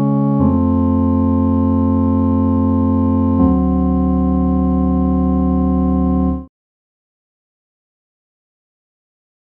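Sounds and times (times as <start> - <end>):
one-note melody over chord changes: 0.0 - 6.5.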